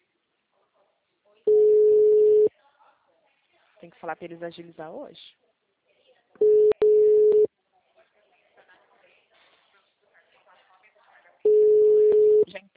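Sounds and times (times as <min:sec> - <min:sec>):
telephone ringback tone while placing a call: 0:01.5 - 0:02.5, 0:06.4 - 0:07.5, 0:11.5 - 0:12.4
speech: 0:03.8 - 0:05.4.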